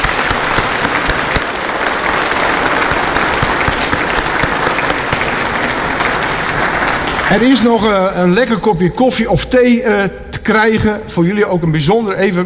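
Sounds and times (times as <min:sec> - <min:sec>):
audience applause: 0:00.0 - 0:08.2
speech: 0:07.3 - 0:12.4.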